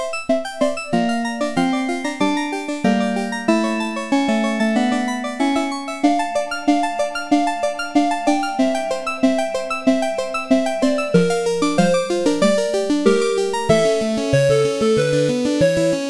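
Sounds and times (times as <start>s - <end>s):
chiptune revamp: 0.0s - 16.0s.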